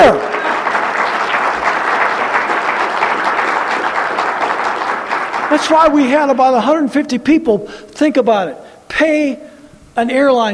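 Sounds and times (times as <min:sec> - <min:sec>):
audience applauding: 0:00.0 - 0:06.4
speech: 0:05.6 - 0:10.5.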